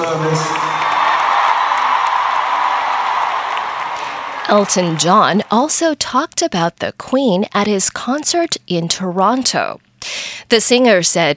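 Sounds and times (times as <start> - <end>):
large concert crowd clapping: 0.0 - 5.6
speech: 0.1 - 0.7, 4.5 - 11.3.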